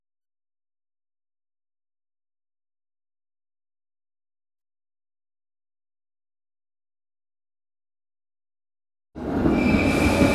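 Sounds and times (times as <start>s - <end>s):
EuroCity train arriving at platform 9 of a station: 9.2s - 10.3s.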